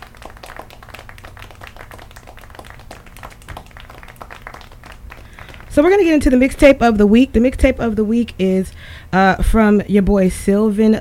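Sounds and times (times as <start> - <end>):
applause: 0.0 - 6.4
speech: 5.8 - 10.9.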